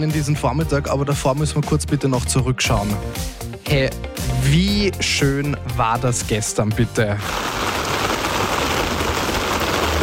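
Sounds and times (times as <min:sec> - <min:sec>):
speech: 0:00.0 - 0:07.9
rain falling: 0:07.2 - 0:10.0.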